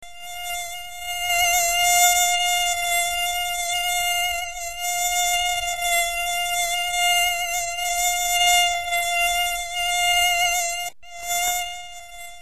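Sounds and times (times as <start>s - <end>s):
mosquito buzzing: 0.0s - 12.4s.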